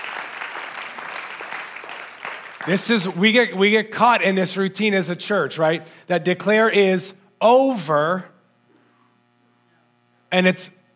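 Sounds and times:
audience clapping: 0.0s - 3.4s
speech: 2.6s - 8.3s, 10.3s - 10.8s.

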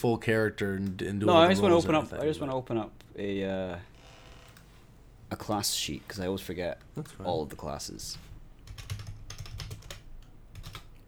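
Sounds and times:
speech: 0.0s - 3.9s, 5.3s - 8.3s
rapid typing on a computer keyboard with plastic keys: 8.6s - 11.0s.

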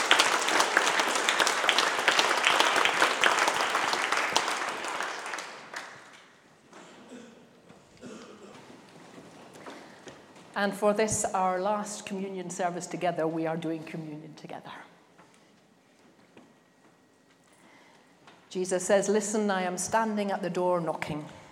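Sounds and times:
audience applause: 0.0s - 6.3s
speech: 10.6s - 14.9s, 18.5s - 21.4s.

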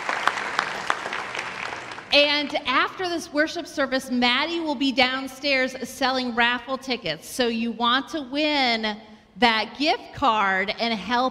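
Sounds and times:
audience clapping: 0.0s - 2.1s
speech: 2.1s - 11.2s.

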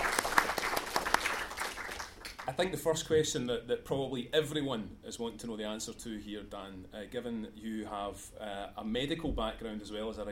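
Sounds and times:
audience applause: 0.0s - 2.6s
speech: 2.5s - 10.2s.

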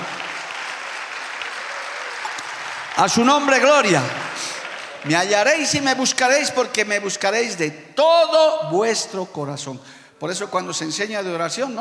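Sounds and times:
audience applause: 0.0s - 6.1s
speech: 3.0s - 4.2s, 5.0s - 11.7s.

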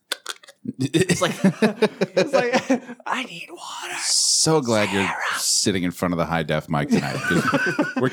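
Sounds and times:
sticky mouth clicks and smacks after eating sugar: 0.0s - 0.7s
laughter: 0.8s - 3.3s, 6.7s - 8.1s
speech: 0.8s - 8.1s.

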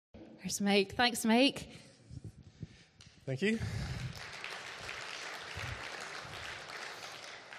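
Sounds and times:
speech: 0.4s - 1.9s, 3.2s - 3.9s
audience applause: 3.8s - 7.5s.

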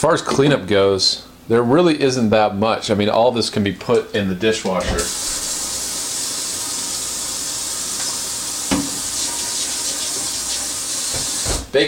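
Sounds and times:
speech: 0.0s - 5.5s
water running while washing out a pan: 4.7s - 11.7s.

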